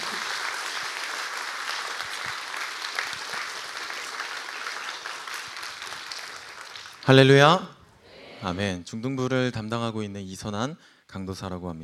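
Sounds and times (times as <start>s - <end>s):
audience applauding: 0.0s - 7.4s
speech: 7.1s - 7.7s, 8.4s - 11.8s.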